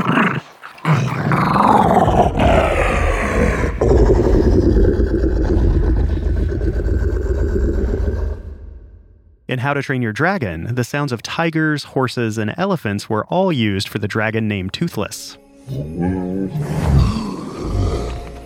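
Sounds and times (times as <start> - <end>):
wiener dog growl pitched way down: 0.0 - 9.2, 15.7 - 18.4
speech: 9.6 - 17.8.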